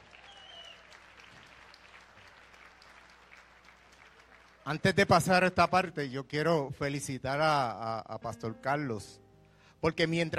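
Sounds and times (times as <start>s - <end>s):
church audience applause: 0.0s - 4.9s
speech: 4.7s - 9.2s, 9.8s - 10.3s.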